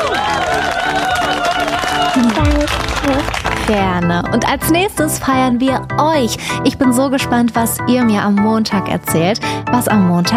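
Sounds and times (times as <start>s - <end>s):
audience applause: 0.0s - 4.4s
low rumble: 2.2s - 7.4s
speech: 3.7s - 10.3s.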